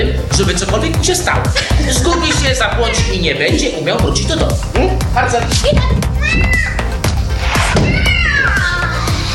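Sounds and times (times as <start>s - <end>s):
speech: 0.5s - 6.9s
laughter: 1.2s - 3.6s
cat meowing: 6.2s - 7.0s, 7.7s - 9.1s.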